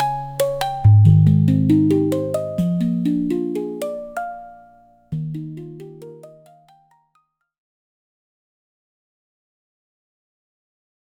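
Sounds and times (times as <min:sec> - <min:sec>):
handpan playing: 0:00.0 - 0:07.0.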